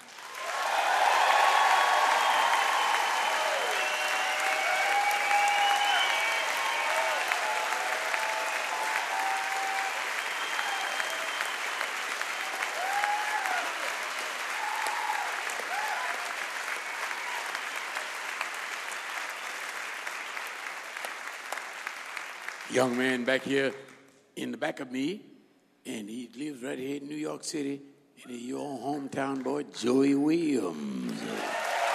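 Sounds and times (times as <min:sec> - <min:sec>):
audience applause: 0:00.0 - 0:23.5, 0:31.0 - 0:31.9
speech: 0:22.7 - 0:23.8, 0:24.4 - 0:31.6.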